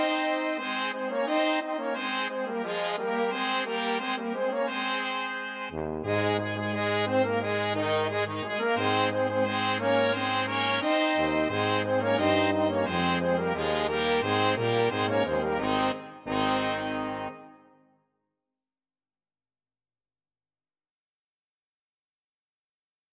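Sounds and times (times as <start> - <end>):
processional fanfare: 0.0 - 17.8.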